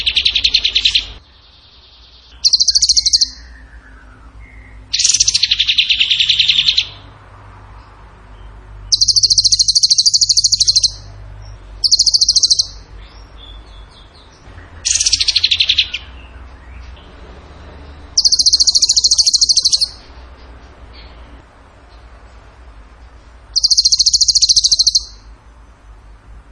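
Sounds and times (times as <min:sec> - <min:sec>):
bird singing rapid trills: 0:00.0 - 0:01.2, 0:02.0 - 0:07.1, 0:08.8 - 0:11.1, 0:11.8 - 0:16.3, 0:18.1 - 0:20.1, 0:23.5 - 0:25.3.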